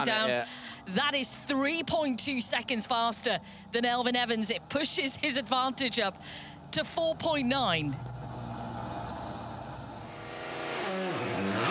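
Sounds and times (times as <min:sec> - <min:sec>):
speech: 0:00.0 - 0:08.1
rally car engine on the Toyota City super special stage: 0:07.9 - 0:11.7.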